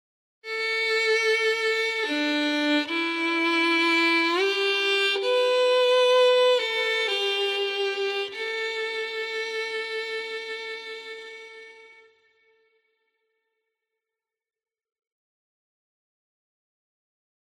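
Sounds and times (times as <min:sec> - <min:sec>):
dramatic documentary violin music: 0:00.5 - 0:12.4.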